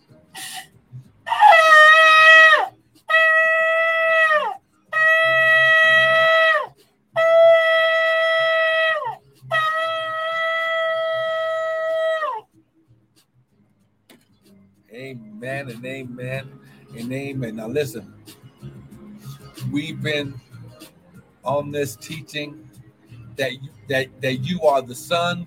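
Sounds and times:
shofar blasts: 1.3s - 12.4s
speech: 15.7s - 18.2s, 19.7s - 20.4s, 21.5s - 22.7s, 23.4s - 25.4s.

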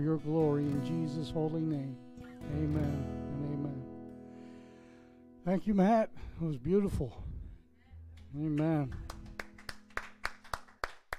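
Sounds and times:
speech: 0.0s - 3.5s, 5.4s - 7.3s, 8.3s - 9.1s
audience clapping in rhythm: 8.8s - 11.1s.

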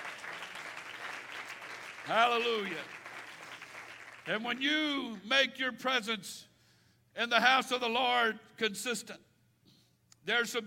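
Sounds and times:
audience clapping hands: 0.0s - 4.6s
speech: 2.1s - 3.0s, 4.2s - 6.5s, 7.2s - 9.3s, 10.2s - 10.6s.

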